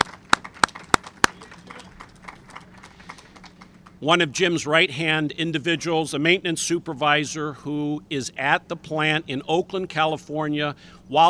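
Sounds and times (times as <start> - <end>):
applause: 0.0 - 4.0
speech: 4.0 - 11.2.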